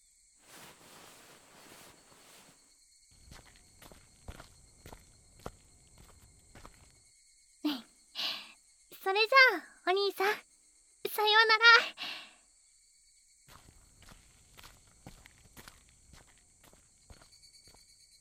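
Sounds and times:
insects chirring: 0.0s - 18.1s
footsteps walking to a shrine gate: 0.4s - 2.6s
rustling: 0.4s - 2.6s.

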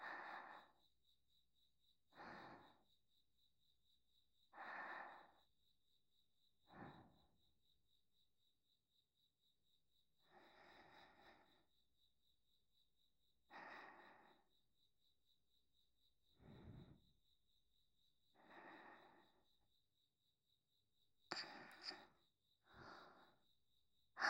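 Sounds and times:
sleep breathing on the right: 0.0s - 0.8s, 2.1s - 2.8s, 4.5s - 5.4s, 6.7s - 7.3s, 10.2s - 11.7s, 13.5s - 14.5s, 16.4s - 17.0s, 18.3s - 19.5s, 21.3s - 23.4s.

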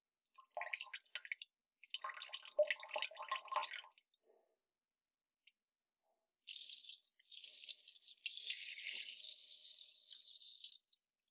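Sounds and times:
urination in a toilet: 0.2s - 4.1s, 6.5s - 11.2s.

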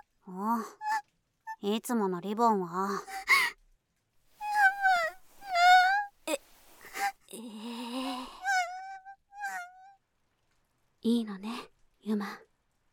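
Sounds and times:
speech: 0.3s - 0.9s, 1.6s - 3.3s, 11.0s - 12.4s
girl crying and whimpering: 3.0s - 3.5s, 4.4s - 7.2s, 7.8s - 9.8s.

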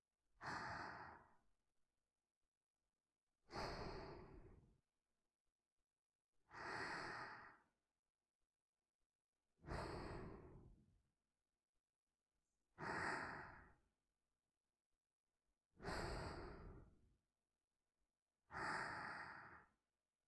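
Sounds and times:
person breathing in sleep: 0.4s - 1.4s, 3.5s - 4.7s, 6.5s - 7.7s, 9.6s - 10.8s, 12.8s - 13.8s, 15.8s - 17.0s, 18.5s - 19.8s.

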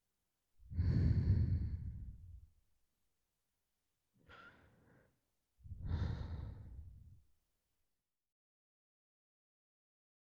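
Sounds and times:
sleeping breath: 0.7s - 2.4s, 5.7s - 7.1s.

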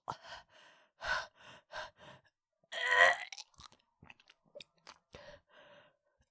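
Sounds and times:
person panting: 0.1s - 2.3s
person choking: 2.7s - 3.4s
person vomiting: 2.7s - 3.4s.

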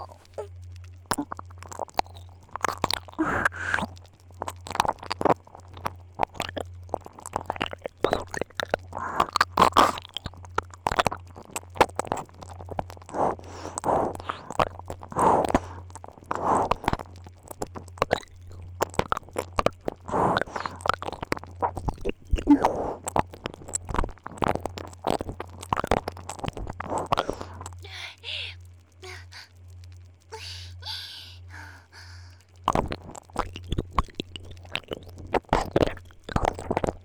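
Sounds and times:
wet ASMR mouth sounds imitating eating an ear: 0.0s - 37.0s
steady low hum: 26.9s - 33.3s.

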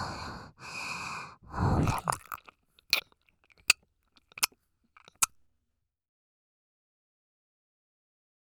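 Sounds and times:
ASMR ear licking sounds: 1.5s - 5.4s.

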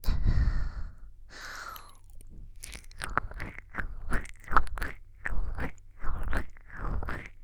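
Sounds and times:
tongue rubbing: 0.0s - 7.3s.

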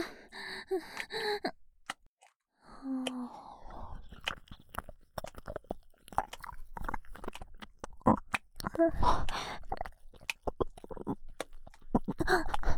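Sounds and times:
ASMR ear licking: 3.0s - 12.7s.

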